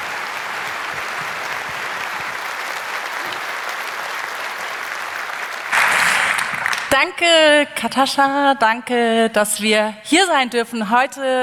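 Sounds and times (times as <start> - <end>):
audience applause: 0.0 - 7.0
speech: 7.0 - 11.4.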